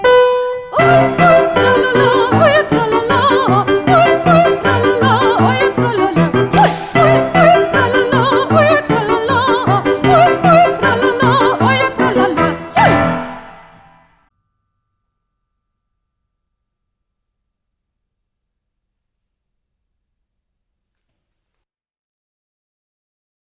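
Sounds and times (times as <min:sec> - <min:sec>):
person singing: 0:00.1 - 0:13.4.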